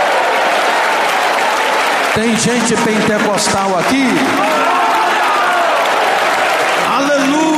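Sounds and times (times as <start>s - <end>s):
congregation clapping during a Pentecostal church service: 0.0s - 7.5s
speech: 2.2s - 4.7s.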